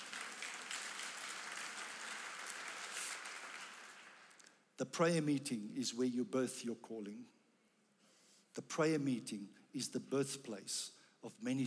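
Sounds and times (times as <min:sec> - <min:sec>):
crowd clapping: 0:00.0 - 0:04.6
speech: 0:04.8 - 0:07.4, 0:08.6 - 0:11.6.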